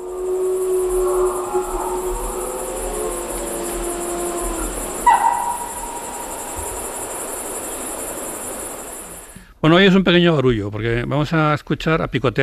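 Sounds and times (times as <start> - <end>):
wolves howling: 0.0 - 9.2
speech: 9.6 - 12.4.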